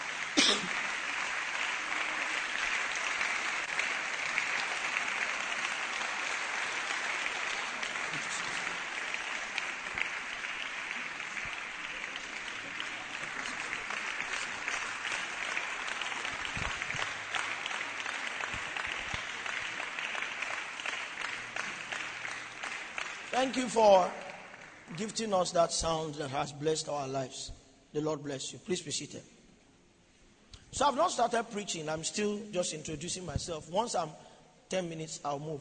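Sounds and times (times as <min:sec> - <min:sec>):
large audience applauding to welcome a guest: 0:00.0 - 0:25.0
cough: 0:00.3 - 0:00.9
speech: 0:23.4 - 0:24.2, 0:25.0 - 0:29.3, 0:30.8 - 0:35.6.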